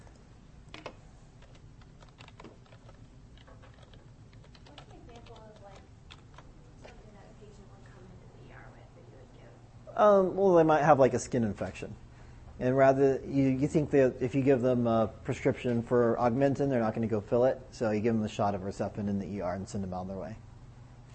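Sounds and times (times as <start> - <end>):
typing on a computer keyboard: 0.7 - 6.5
speech: 10.0 - 12.0, 12.6 - 20.4.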